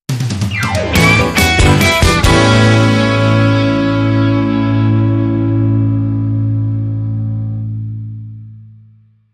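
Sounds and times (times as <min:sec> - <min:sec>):
rock club music: 0:00.1 - 0:08.8.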